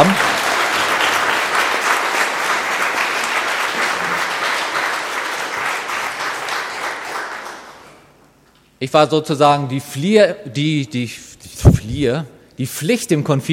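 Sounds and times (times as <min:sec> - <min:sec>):
audience applause: 0:00.0 - 0:08.0
speech: 0:08.8 - 0:13.5.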